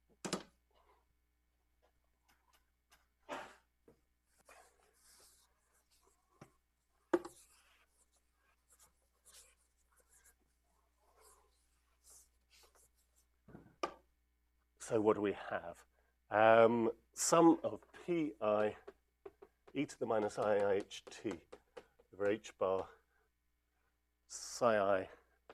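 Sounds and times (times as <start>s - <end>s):
writing scratching on a board: 4.3s - 13.2s, 17.9s - 22.9s
speech: 14.9s - 18.9s, 19.7s - 21.5s, 22.2s - 23.0s, 24.3s - 25.2s.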